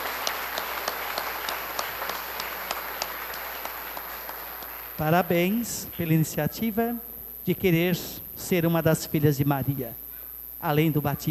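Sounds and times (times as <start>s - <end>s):
audience applause: 0.0s - 5.2s
speech: 5.0s - 10.0s, 10.6s - 11.3s.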